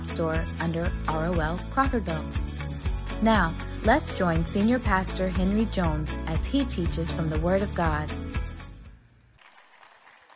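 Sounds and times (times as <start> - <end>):
speech: 0.2 - 2.5, 3.2 - 8.2
audience clapping: 9.4 - 10.3.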